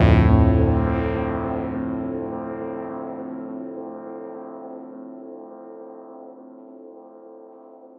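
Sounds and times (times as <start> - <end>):
dub chord: 0.0 - 3.8.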